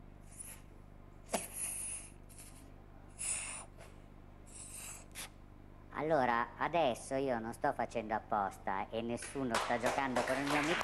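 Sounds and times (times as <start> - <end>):
inhaling gas from a balloon: 0.2 - 0.7, 1.3 - 5.4
speech: 6.0 - 10.8.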